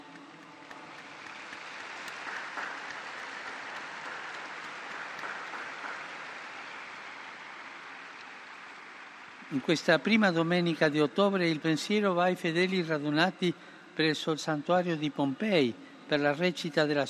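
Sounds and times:
applause for the newly beatified: 0.0s - 10.8s
speech: 9.5s - 17.0s.

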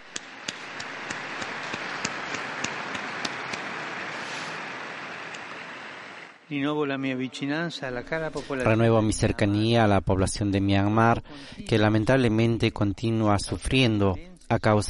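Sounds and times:
crowd applause: 0.0s - 6.3s
speech: 6.5s - 14.8s.

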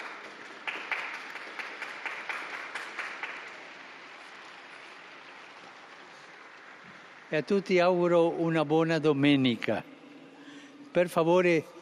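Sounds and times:
large crowd applauding: 0.0s - 7.4s
speech: 7.3s - 9.9s, 10.9s - 11.8s.

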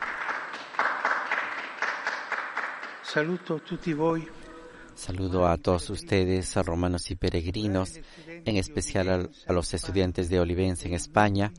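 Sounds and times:
crowd applauding: 0.0s - 3.7s
speech: 3.1s - 4.4s, 5.0s - 11.5s.

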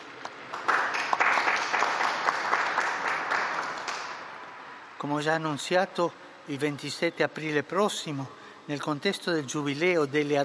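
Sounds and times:
audience applause: 0.4s - 4.4s
speech: 5.0s - 10.4s.

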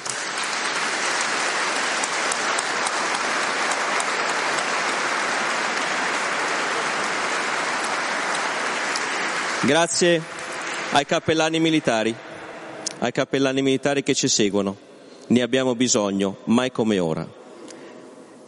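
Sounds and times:
audience applause: 0.0s - 12.6s
speech: 9.6s - 12.3s, 13.0s - 17.4s.

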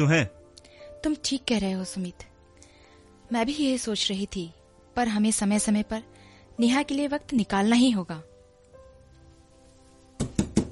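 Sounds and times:
speech: 0.0s - 0.4s, 1.0s - 2.3s, 3.3s - 8.3s
firm knocks on a door: 10.2s - 10.7s.

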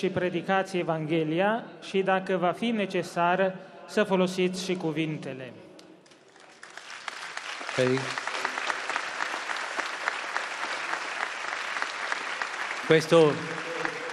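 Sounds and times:
speech: 0.0s - 5.7s, 7.8s - 8.2s, 12.9s - 13.7s
audience applause: 6.1s - 14.1s.

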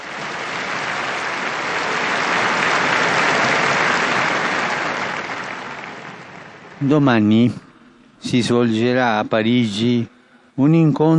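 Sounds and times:
crowd applause: 0.0s - 7.6s
speech: 6.8s - 7.6s, 8.2s - 11.1s.

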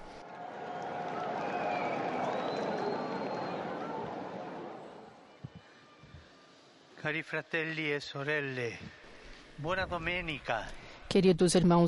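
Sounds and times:
crowd applauding in a public square: 0.2s - 5.3s
faint cheers: 0.2s - 5.3s
speech: 7.0s - 9.0s, 9.6s - 11.8s.

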